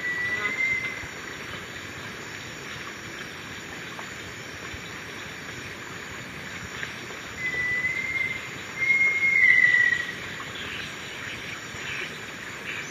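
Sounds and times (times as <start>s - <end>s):
little tinamou whistle in the Eastern Lowlands, South America: 0.0s - 1.0s, 7.4s - 10.1s.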